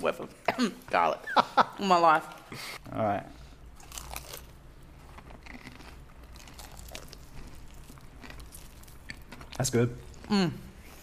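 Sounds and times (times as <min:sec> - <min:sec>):
speech: 0:00.0 - 0:03.4, 0:09.6 - 0:10.6
crunchy bites of fried chicken: 0:03.8 - 0:10.4.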